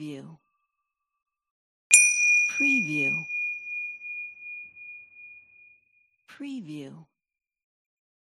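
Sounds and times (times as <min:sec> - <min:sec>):
ding: 0:01.9 - 0:05.6.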